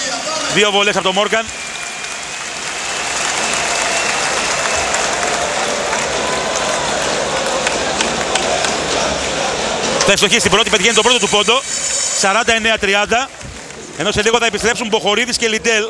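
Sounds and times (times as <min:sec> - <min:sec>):
audience applause: 0:00.0 - 0:15.6
speech: 0:00.5 - 0:01.6, 0:10.1 - 0:13.4, 0:14.0 - 0:15.8.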